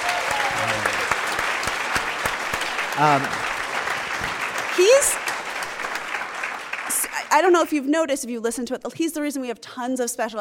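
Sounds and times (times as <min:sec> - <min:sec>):
round of applause: 0:00.0 - 0:07.5
speech: 0:03.0 - 0:03.4, 0:04.2 - 0:05.2, 0:07.3 - 0:10.3.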